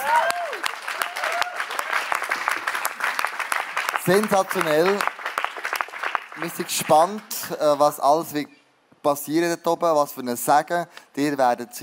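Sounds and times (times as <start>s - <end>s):
whoops and cheers: 0.0s - 2.1s
large crowd applause: 0.0s - 7.3s
speech: 4.0s - 5.1s, 6.4s - 11.8s.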